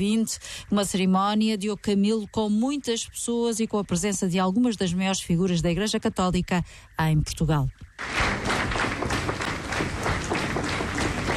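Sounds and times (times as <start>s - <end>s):
speech: 0.0s - 8.5s
loud round of applause: 8.0s - 11.3s.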